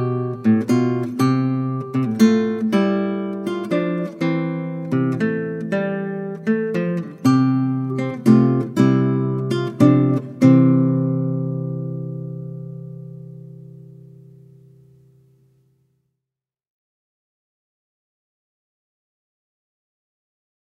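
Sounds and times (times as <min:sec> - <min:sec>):
classical guitar: 0:00.0 - 0:15.9.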